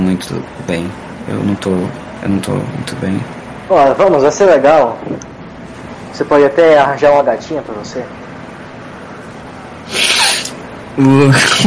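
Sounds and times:
speech: 0:00.2 - 0:05.3, 0:06.2 - 0:08.2, 0:11.0 - 0:11.6
person sniffing: 0:09.9 - 0:10.6
laughter: 0:11.1 - 0:11.6.

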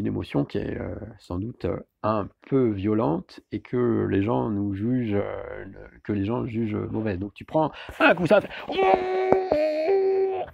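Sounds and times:
speech: 0:00.0 - 0:09.7
person screaming out anger: 0:08.7 - 0:10.5.

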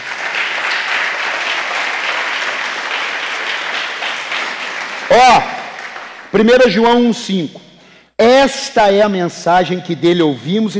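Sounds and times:
audience applause: 0:00.0 - 0:06.5
speech: 0:05.1 - 0:05.5, 0:06.3 - 0:07.7, 0:08.4 - 0:10.7.

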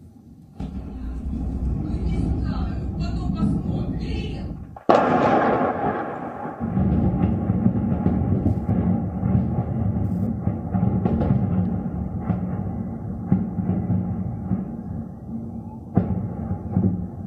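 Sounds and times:
deep roaring and crackling: 0:00.5 - 0:13.8
bomb explosions in a city: 0:00.5 - 0:17.2
faint voices: 0:00.6 - 0:04.8, 0:14.6 - 0:17.2
sharp loud blast: 0:00.6 - 0:15.0.

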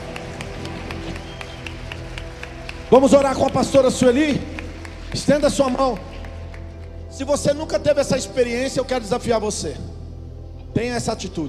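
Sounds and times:
audience applauding: 0:00.0 - 0:07.1
speech: 0:02.9 - 0:04.5, 0:05.1 - 0:06.1, 0:07.1 - 0:09.9, 0:10.8 - 0:11.4.

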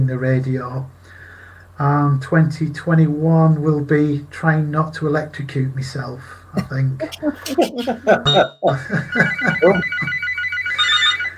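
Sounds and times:
speech: 0:00.0 - 0:01.0, 0:01.8 - 0:10.2
laughter: 0:06.6 - 0:10.2
telephone ringtone: 0:08.2 - 0:11.3.

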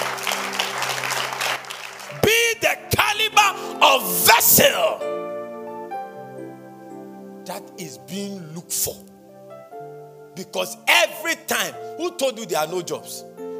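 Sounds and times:
audience clapping: 0:00.0 - 0:02.6
held musical tones: 0:00.0 - 0:13.5
speech: 0:04.0 - 0:05.1, 0:07.6 - 0:09.2, 0:10.4 - 0:13.3.

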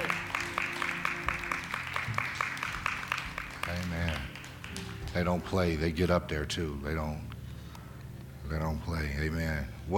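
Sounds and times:
audience clapping hands: 0:00.0 - 0:05.7
speech: 0:05.2 - 0:07.3, 0:08.5 - 0:09.9.

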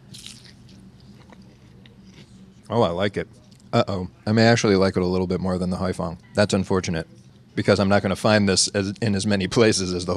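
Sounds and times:
biting and chewing fried tofu dipped in Lee Kum Kee sauce: 0:00.0 - 0:02.4
speech: 0:02.7 - 0:10.1.

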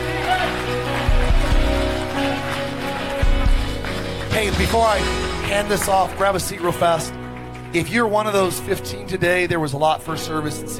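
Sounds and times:
audience hand clapping applause: 0:00.0 - 0:08.9
low musical tone: 0:01.2 - 0:09.4
speech: 0:04.4 - 0:10.7.

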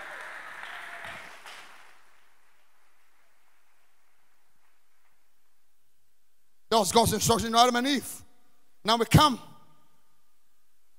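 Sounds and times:
audience clapping hands: 0:00.0 - 0:05.3
speech: 0:06.8 - 0:08.2, 0:08.8 - 0:09.5.

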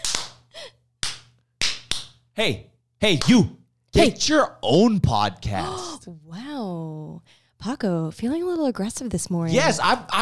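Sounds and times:
hand claps: 0:00.0 - 0:02.2, 0:03.1 - 0:03.4
speech: 0:02.4 - 0:10.2.

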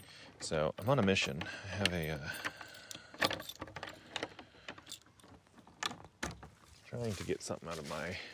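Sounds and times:
speech: 0:00.4 - 0:02.5, 0:07.0 - 0:08.3
footsteps crunching dry leaves: 0:06.7 - 0:08.3.

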